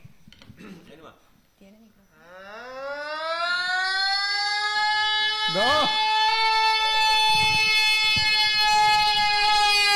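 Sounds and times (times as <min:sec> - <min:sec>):
voice imitating a siren: 0:02.2 - 0:09.9
speech: 0:05.5 - 0:06.0.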